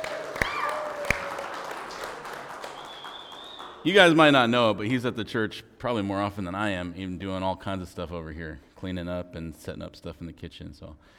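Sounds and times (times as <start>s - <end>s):
audience applause: 0.0s - 4.4s
speech: 3.8s - 11.1s.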